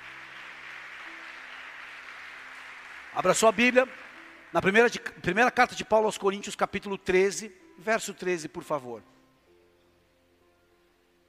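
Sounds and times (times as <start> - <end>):
audience applauding: 0.0 - 4.8
speech: 3.1 - 9.2.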